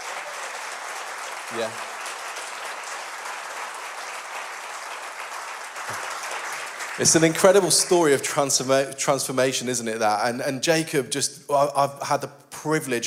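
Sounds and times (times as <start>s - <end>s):
audience applause: 0.0s - 8.2s
speech: 1.5s - 2.0s, 7.0s - 13.0s.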